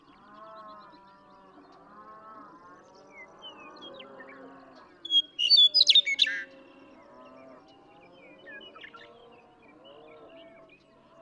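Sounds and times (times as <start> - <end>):
Western meadowlark singing: 5.0 - 6.5.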